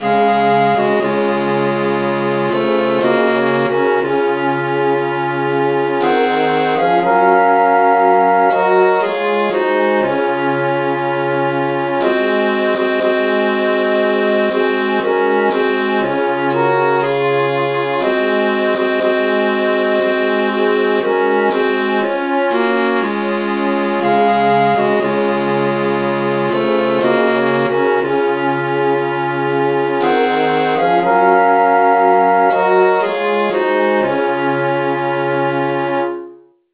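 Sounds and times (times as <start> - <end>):
traditional tune in G flat: 0.0 - 36.7.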